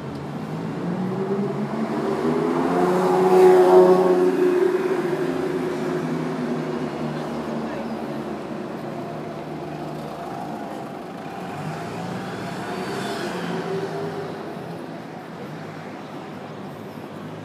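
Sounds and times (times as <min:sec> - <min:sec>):
traffic rumble on Marylebone High Street: 0:00.0 - 0:17.4
faint voices: 0:04.6 - 0:17.4.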